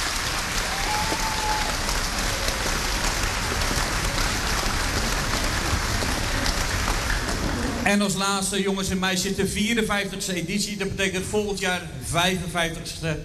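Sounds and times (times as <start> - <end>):
audience applause: 0.0 - 7.8
speech: 7.9 - 13.2.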